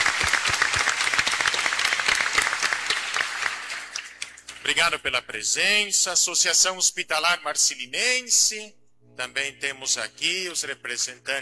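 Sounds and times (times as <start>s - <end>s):
audience applause: 0.0s - 4.7s
speech: 4.7s - 11.4s.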